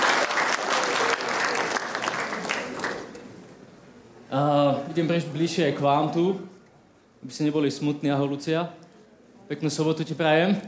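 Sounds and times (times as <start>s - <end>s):
audience applause: 0.0s - 3.2s
speech: 4.3s - 6.5s, 7.2s - 8.8s, 9.5s - 10.6s.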